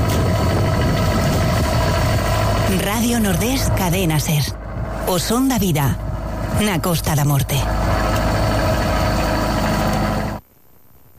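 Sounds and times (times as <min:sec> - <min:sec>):
boat engine leaving the port of Fisterra at night: 0:00.0 - 0:10.4
speech: 0:03.0 - 0:08.3.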